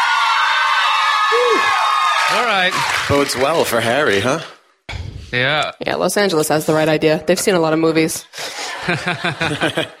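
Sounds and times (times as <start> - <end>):
audience cheering: 0.0 - 4.2
person whooping: 0.9 - 2.0
speech: 1.3 - 4.6, 5.3 - 9.9
laughter: 8.4 - 9.9.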